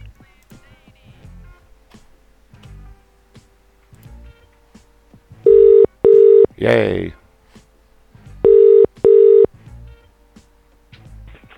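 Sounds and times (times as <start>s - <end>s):
telephone redialing beeps and clicks: 5.5s - 6.6s, 8.4s - 9.5s
speech: 6.6s - 7.2s.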